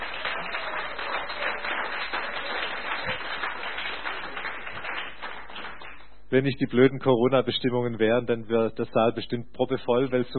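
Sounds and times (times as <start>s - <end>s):
audience applause: 0.0s - 6.0s
speech: 6.3s - 10.3s.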